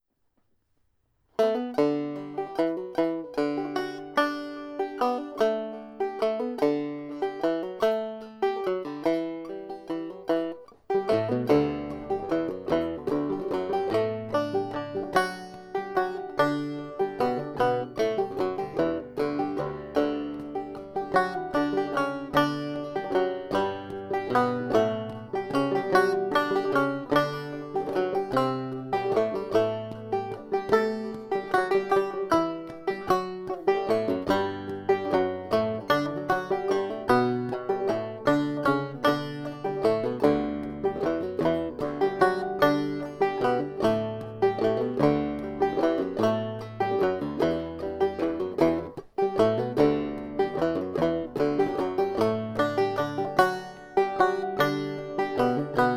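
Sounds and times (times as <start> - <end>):
banjo waltz: 1.4 - 55.9.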